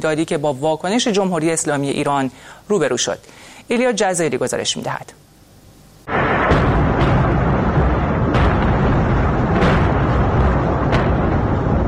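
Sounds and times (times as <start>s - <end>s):
speech: 0.0s - 5.2s
missile strike explosions at the port of Latakia in western Syria: 6.1s - 11.8s.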